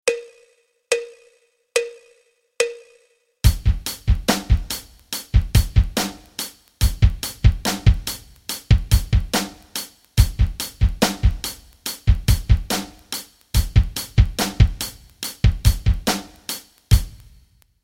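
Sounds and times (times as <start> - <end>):
rock rhythms: 3.4 - 17.4.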